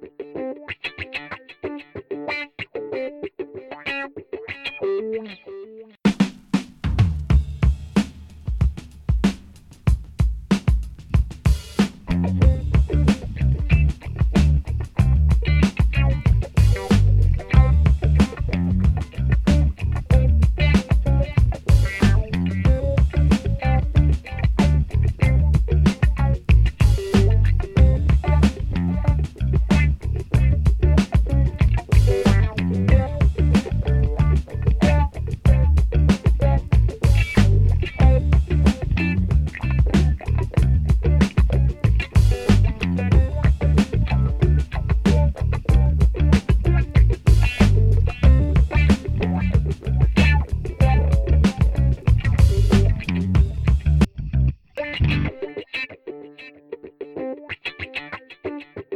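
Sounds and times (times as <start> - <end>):
funk music: 0.0 - 58.9.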